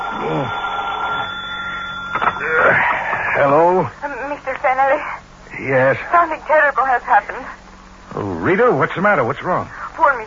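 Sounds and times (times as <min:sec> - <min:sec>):
telephone ringing: 0:00.0 - 0:03.7
speech: 0:05.6 - 0:07.6, 0:08.2 - 0:10.2.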